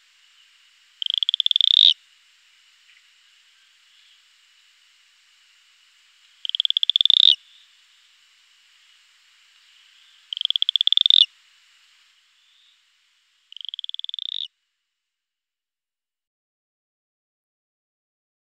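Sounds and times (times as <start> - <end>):
faint hiss: 0.0 - 15.4
Cayenne stubfoot toad pulsed trill: 1.0 - 2.0, 6.4 - 7.4, 10.3 - 11.3, 13.5 - 14.5.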